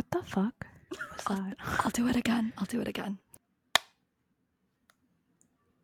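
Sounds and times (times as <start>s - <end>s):
speech: 0.2s - 3.2s
AirPod case snapping shut: 3.7s - 4.0s.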